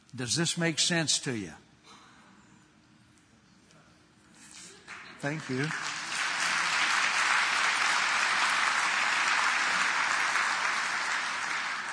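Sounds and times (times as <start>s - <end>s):
speech: 0.1s - 1.6s, 5.2s - 5.9s
audience applause: 4.9s - 11.9s.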